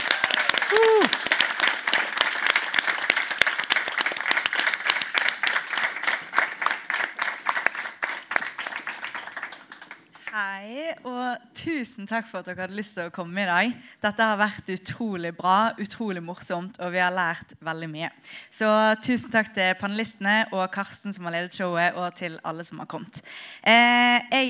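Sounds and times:
person whooping: 0:00.0 - 0:01.2
crowd applauding: 0:00.0 - 0:10.4
speech: 0:11.4 - 0:24.4.

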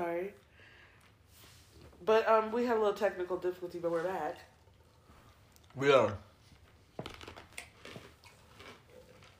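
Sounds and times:
speech: 0:02.0 - 0:04.5, 0:05.8 - 0:06.3
person munching on ice: 0:07.1 - 0:09.3.

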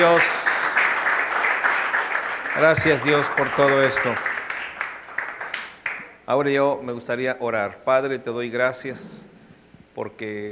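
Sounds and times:
speech: 0:00.0 - 0:00.5, 0:02.6 - 0:04.3, 0:06.3 - 0:09.3, 0:10.0 - 0:10.5
audience applause: 0:00.0 - 0:06.1.

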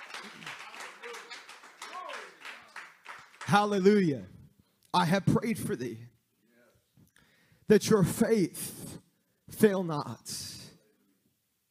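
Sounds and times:
audience hand clapping in praise: 0:00.0 - 0:04.3
speech: 0:03.5 - 0:04.3, 0:04.9 - 0:06.1, 0:07.7 - 0:08.9, 0:09.6 - 0:10.4.

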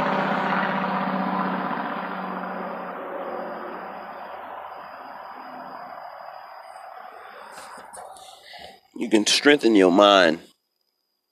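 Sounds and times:
large truck engine passing: 0:00.0 - 0:08.5
speech: 0:09.0 - 0:10.5.

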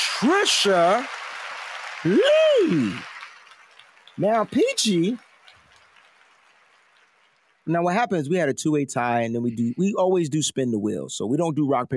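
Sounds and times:
crowd applause: 0:00.0 - 0:08.0
speech: 0:00.2 - 0:01.2, 0:02.0 - 0:03.1, 0:04.2 - 0:05.2, 0:07.7 - 0:11.9.

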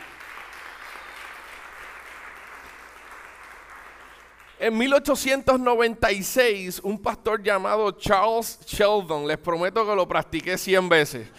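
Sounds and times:
audience applause: 0:00.0 - 0:04.6
speech: 0:04.6 - 0:11.3.

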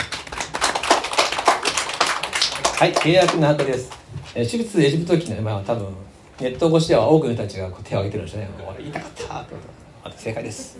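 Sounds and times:
small group clapping: 0:00.0 - 0:04.1
speech: 0:02.8 - 0:10.7.

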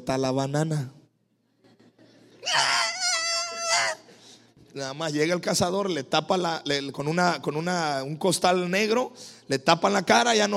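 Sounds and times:
speech: 0:00.0 - 0:01.0, 0:04.7 - 0:10.5
person imitating a little monkey screaming: 0:02.4 - 0:04.1.

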